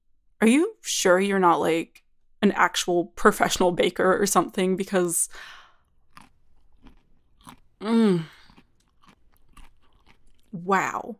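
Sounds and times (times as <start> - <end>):
speech: 0.4 - 5.6, 7.8 - 8.4, 10.5 - 11.1
chewing a chocolate chip cookie: 5.8 - 10.6.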